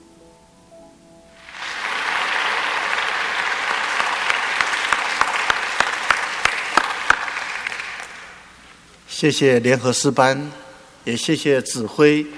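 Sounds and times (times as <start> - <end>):
audience applause after choir song: 1.4 - 8.5
speech: 9.2 - 12.3.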